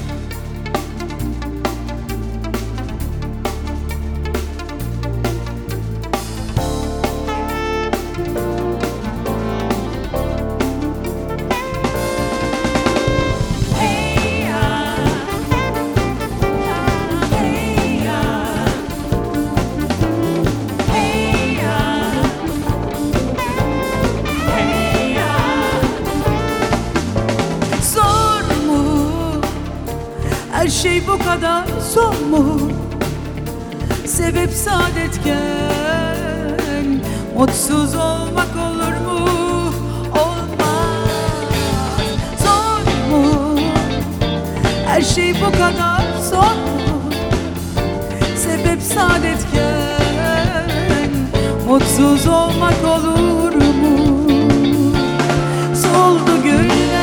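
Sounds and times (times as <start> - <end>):
acoustic song: 0.1 - 57.0.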